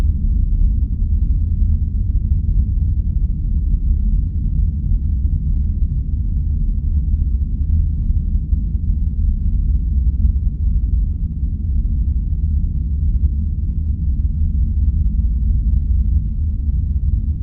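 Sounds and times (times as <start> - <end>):
deep space rumble: 0.0 - 17.4.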